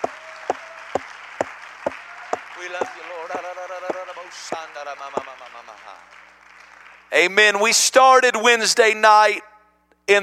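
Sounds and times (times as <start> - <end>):
audience clapping in unison: 0.0 - 7.4
speech: 2.6 - 6.2, 7.1 - 9.5, 10.1 - 10.2.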